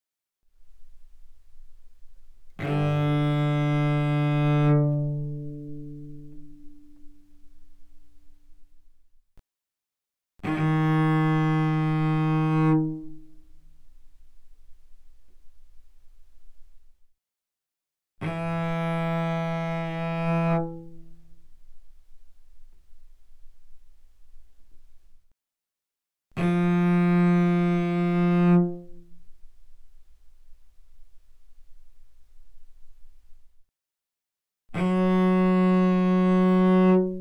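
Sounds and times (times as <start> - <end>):
cello bowed fortissimo on D string: 0.5 - 9.0, 10.4 - 16.9, 18.2 - 25.2, 26.4 - 33.5, 34.8 - 37.2.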